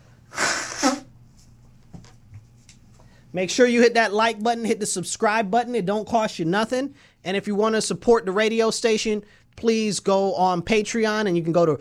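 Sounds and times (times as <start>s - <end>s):
nose blowing: 0.0s - 1.2s
speech: 3.3s - 11.7s.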